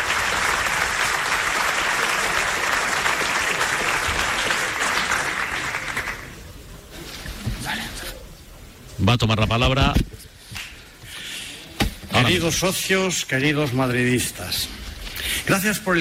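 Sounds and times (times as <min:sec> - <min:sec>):
applause from a large crowd in a hotel auditorium: 0:00.0 - 0:06.6
speech: 0:09.0 - 0:10.2, 0:12.3 - 0:14.8, 0:15.4 - 0:16.0.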